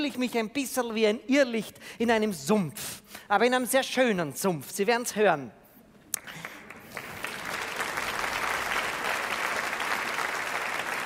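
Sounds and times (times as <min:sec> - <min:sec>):
speech: 0:00.0 - 0:05.6
audience applause: 0:06.2 - 0:11.0.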